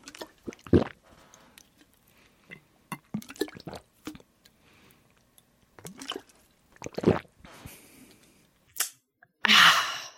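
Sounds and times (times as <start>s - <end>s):
water bubbling through a straw with a flavour pod: 0.0s - 1.0s, 3.0s - 4.3s, 5.8s - 7.4s.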